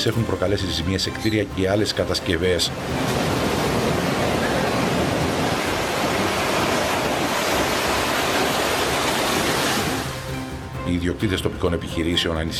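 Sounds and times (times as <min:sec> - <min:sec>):
speech: 0:00.0 - 0:03.4, 0:10.9 - 0:12.5
storm waves crashing on the shore: 0:02.6 - 0:10.5.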